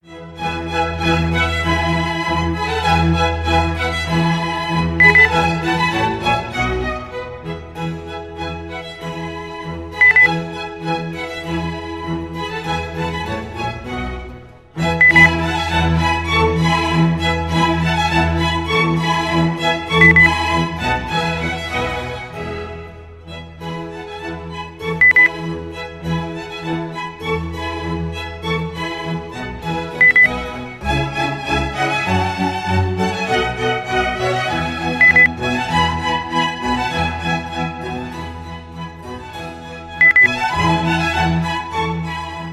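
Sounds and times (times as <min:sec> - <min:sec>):
classical music: 0:00.0 - 0:42.5
beep: 0:05.0 - 0:05.3, 0:10.0 - 0:10.3, 0:15.0 - 0:15.3, 0:20.0 - 0:20.3, 0:25.0 - 0:25.3, 0:30.0 - 0:30.3, 0:35.0 - 0:35.3, 0:40.0 - 0:40.3.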